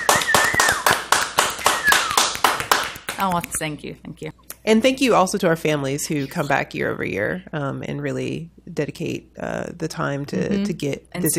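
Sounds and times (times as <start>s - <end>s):
audience applause: 0.0s - 3.2s
speech: 3.2s - 11.3s.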